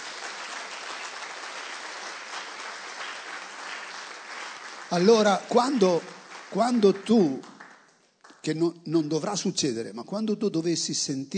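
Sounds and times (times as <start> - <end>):
audience applause: 0.0 - 8.4
speech: 4.9 - 7.5, 8.4 - 11.3.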